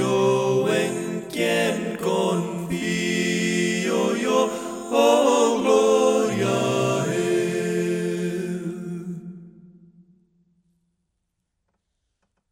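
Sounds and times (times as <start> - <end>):
a cappella singing: 0.0 - 9.9.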